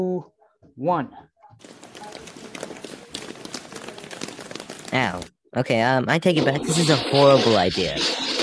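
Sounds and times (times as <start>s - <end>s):
speech: 0.0s - 1.9s, 4.9s - 8.3s
footsteps of several people running up stairs: 1.6s - 5.3s.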